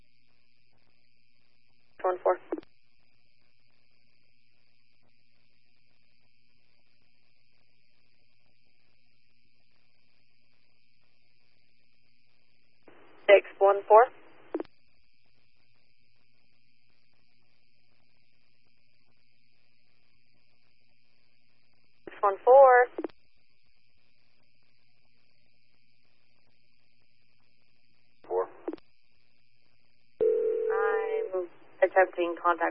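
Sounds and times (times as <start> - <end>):
thin radio-like voices: 2.0 - 2.6, 12.9 - 14.6, 22.1 - 23.1, 28.3 - 28.8, 30.6 - 32.6
speech: 2.1 - 2.6, 32.2 - 32.6
telephone dial tone: 30.2 - 31.4.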